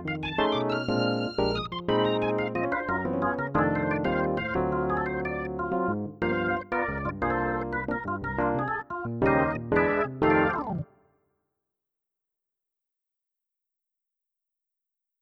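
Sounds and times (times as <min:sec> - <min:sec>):
jazz organ on Yamaha NP-15 WH digital piano: 0:00.0 - 0:10.9.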